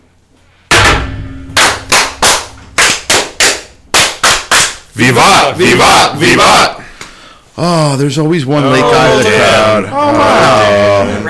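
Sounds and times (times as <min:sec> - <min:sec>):
cannon blasts: 0:00.7 - 0:04.2
speech: 0:05.0 - 0:06.8, 0:07.6 - 0:11.2.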